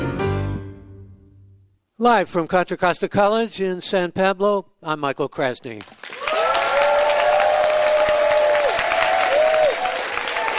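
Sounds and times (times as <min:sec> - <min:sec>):
speech: 0:02.0 - 0:06.0
crowd applause for a live radio show at Contra Costa College: 0:05.8 - 0:10.5.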